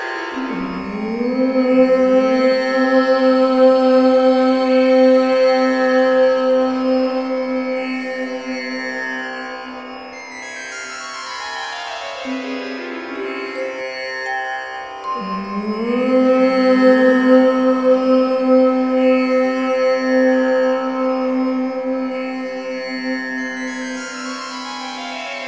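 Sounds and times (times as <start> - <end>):
woman chanting om: 0.5 - 10.1, 15.1 - 25.2.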